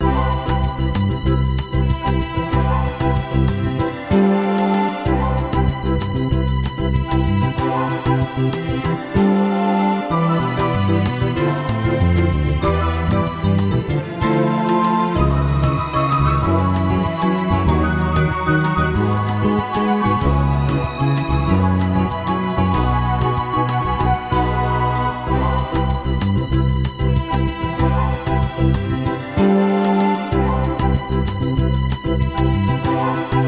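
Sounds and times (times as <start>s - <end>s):
happy story music: 0.0s - 33.4s.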